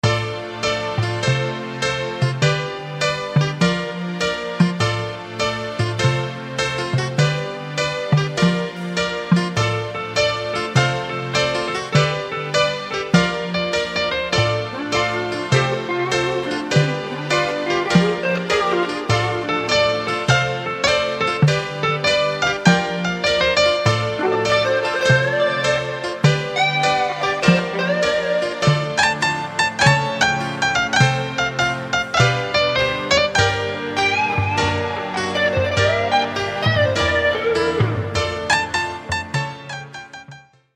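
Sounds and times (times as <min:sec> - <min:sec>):
honky-tonk blues music: 0:00.0 - 0:40.5.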